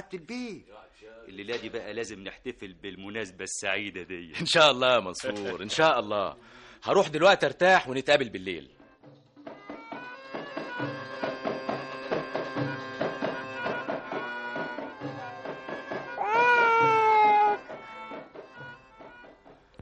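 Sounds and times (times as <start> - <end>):
speech: 0.1 - 9.2
baby girl crying in a radio drama: 9.5 - 11.4, 12.0 - 19.5.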